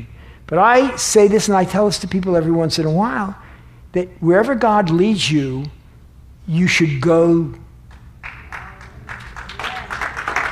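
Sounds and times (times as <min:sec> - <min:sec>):
speech: 0:00.0 - 0:05.8, 0:06.5 - 0:07.6
low hum: 0:00.0 - 0:10.5
scattered applause: 0:07.9 - 0:10.5.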